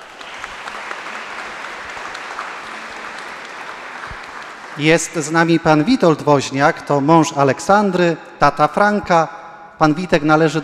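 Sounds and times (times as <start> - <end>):
audience applause: 0.0 - 6.0
speech: 4.8 - 10.6.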